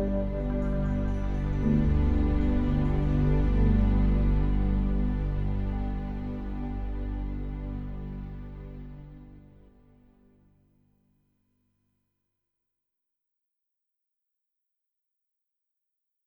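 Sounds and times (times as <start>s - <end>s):
ambient music: 0.0s - 10.3s.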